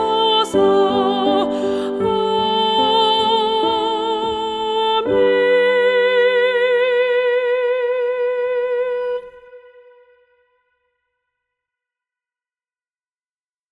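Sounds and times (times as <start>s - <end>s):
soprano singing: 0.0s - 10.6s.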